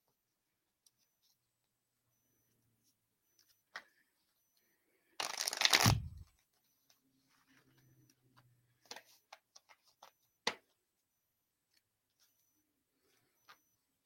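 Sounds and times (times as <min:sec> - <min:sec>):
cards shuffled for a reading: 0:05.2 - 0:06.2.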